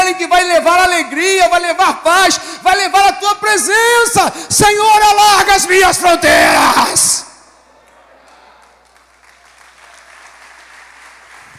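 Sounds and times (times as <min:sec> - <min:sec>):
speech: 0:00.2 - 0:07.3
audience applauding: 0:07.7 - 0:11.5.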